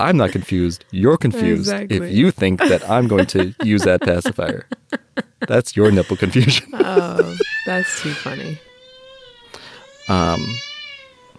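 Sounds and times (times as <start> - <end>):
laughter: 0.0 - 0.7, 1.4 - 8.6
speech: 0.0 - 8.7, 10.1 - 10.7
child crying in the background: 1.4 - 2.0, 2.6 - 4.4, 6.7 - 11.3.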